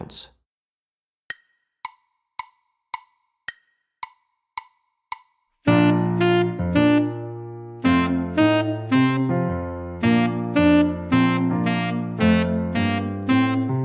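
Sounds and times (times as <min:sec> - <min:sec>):
tenor saxophone etude: 0:05.7 - 0:09.3, 0:10.0 - 0:13.7.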